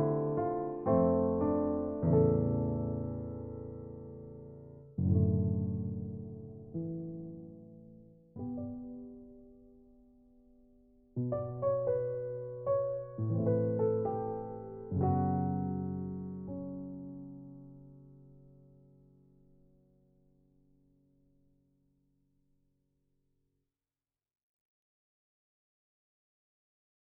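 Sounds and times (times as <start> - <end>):
solo piano: 0.0 - 20.4.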